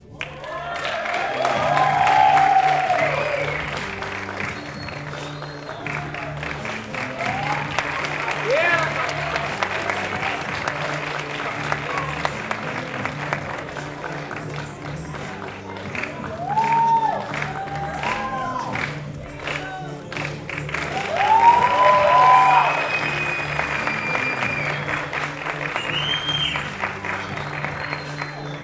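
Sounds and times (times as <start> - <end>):
music: 0.0 - 28.6
people cheering: 0.0 - 28.6
rounds of applause: 0.0 - 28.6
whistling: 1.4 - 12.3, 21.0 - 28.6.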